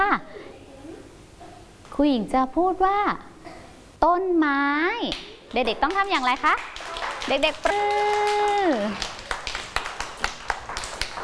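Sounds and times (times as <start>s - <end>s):
speech: 2.0s - 3.3s, 4.0s - 9.1s
children clapping hands: 5.1s - 11.2s.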